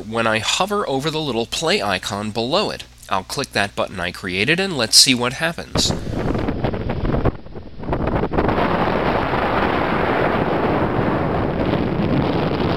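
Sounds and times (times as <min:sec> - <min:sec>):
speech: 0:00.1 - 0:06.1
strong wind blowing across a high rusty bridge to an old Irish lighthouse: 0:05.7 - 0:12.7.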